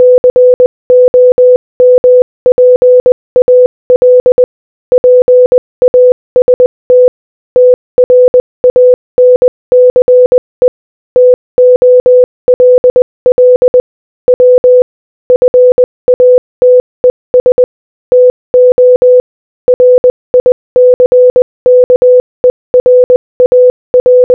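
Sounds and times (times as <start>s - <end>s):
Morse code audio: 0.0s - 24.3s.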